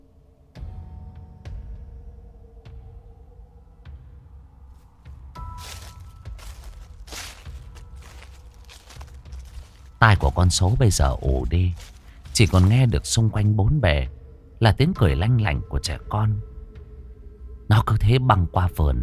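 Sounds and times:
footsteps crunching on dry leaves: 4.8s - 13.5s
speech: 10.0s - 16.5s, 17.7s - 19.0s.

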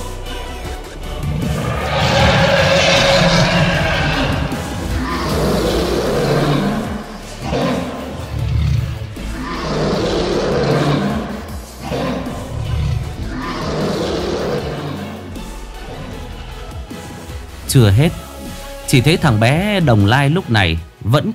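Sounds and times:
dragon roar: 0.3s - 17.4s
speech: 17.8s - 18.2s, 18.9s - 21.3s.

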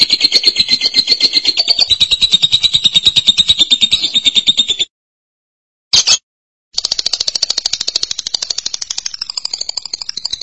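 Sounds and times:
lovebird calls: 0.0s - 4.9s.

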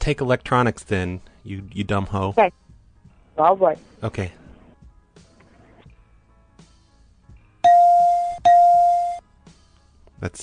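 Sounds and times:
speech: 0.0s - 2.6s, 3.4s - 4.4s, 10.2s - 10.4s
telephone ringing: 7.6s - 9.2s.

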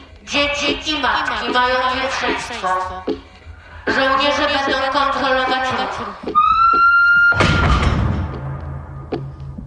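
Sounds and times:
speech: 0.3s - 3.3s, 3.9s - 6.5s
explosion: 7.3s - 9.1s.

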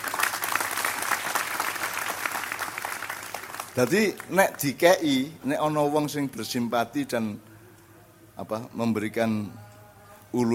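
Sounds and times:
audience applause: 0.0s - 4.5s
speech: 3.8s - 7.5s, 8.4s - 9.6s, 10.3s - 10.5s.

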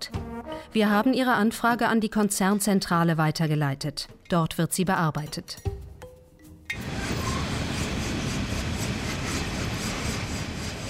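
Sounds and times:
speech: 0.7s - 5.7s
coal freight train with open wagons passing in Colombia's Cesar mining region: 6.7s - 10.8s.

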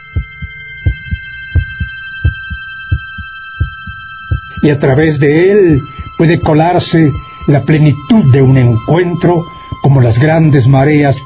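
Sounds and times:
heartbeat sound effect: 0.0s - 4.8s
thin sustained high-pitched electronic drone: 0.0s - 11.2s
speech: 4.6s - 11.2s.

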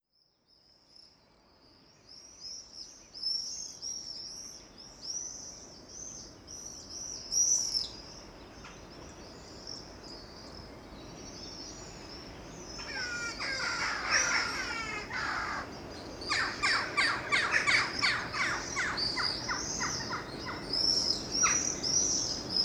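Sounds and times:
birds chirping: 12.8s - 22.5s.

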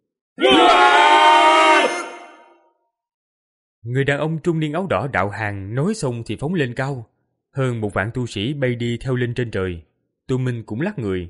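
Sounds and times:
huge crowd roaring battle cry: 0.4s - 2.5s
speech: 3.9s - 11.2s.

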